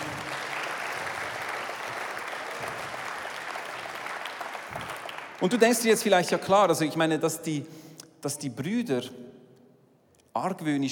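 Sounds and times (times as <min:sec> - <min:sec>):
audience applause: 0:00.0 - 0:06.1
speech: 0:05.4 - 0:09.2, 0:10.4 - 0:10.9.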